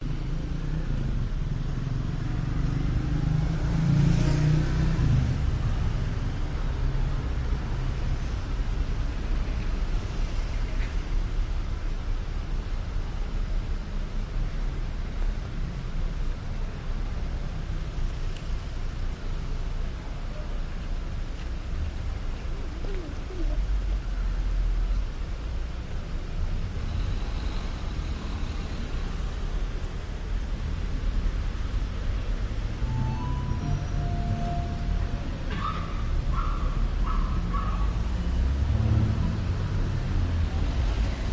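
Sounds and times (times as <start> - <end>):
Athens side street ambience on a weekday evening: 0.0 - 41.3.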